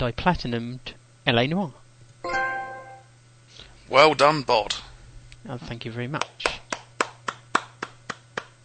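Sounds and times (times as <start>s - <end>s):
speech: 0.0s - 2.4s, 3.9s - 6.6s
small clap: 6.2s - 8.6s.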